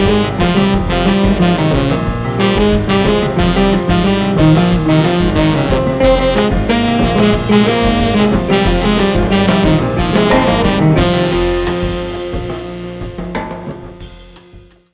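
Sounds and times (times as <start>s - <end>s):
jazz groove: 0.0s - 14.9s.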